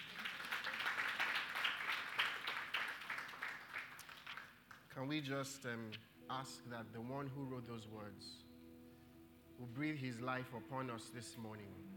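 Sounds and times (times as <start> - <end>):
round of applause from a crowd: 0.0 - 4.5
speech: 5.0 - 8.5, 9.6 - 11.9.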